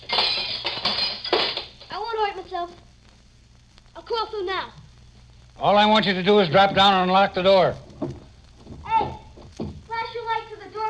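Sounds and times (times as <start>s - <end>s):
glass knocked out of a window frame: 0.0s - 1.9s
speech: 4.1s - 4.8s, 5.6s - 8.2s.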